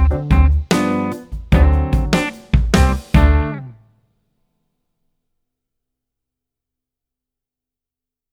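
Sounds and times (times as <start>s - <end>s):
piano: 0.0s - 3.7s.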